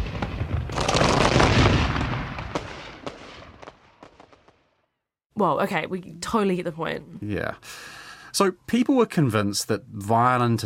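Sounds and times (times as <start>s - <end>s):
crackling debris: 0.0s - 4.8s
explosion blast sound effect: 0.0s - 4.8s
speech: 5.4s - 10.6s.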